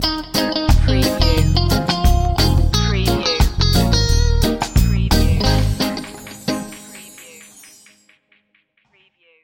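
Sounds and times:
reggae music stinger: 0.0 - 7.8.

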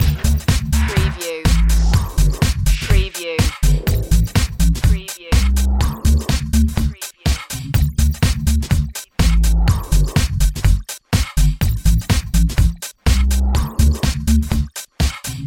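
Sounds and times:
beat loop: 0.0 - 15.4.

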